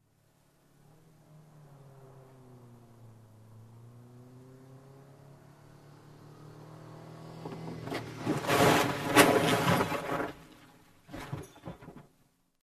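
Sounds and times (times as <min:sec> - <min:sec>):
car approaching: 0:00.0 - 0:11.1
car crash: 0:07.5 - 0:12.2.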